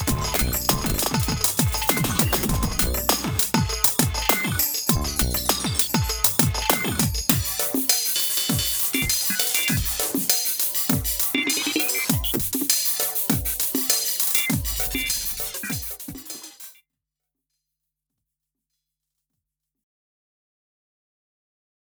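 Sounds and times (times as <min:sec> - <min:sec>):
synths: 0:00.0 - 0:16.2
drums with Eventide H3000 stutter effect: 0:00.0 - 0:16.8.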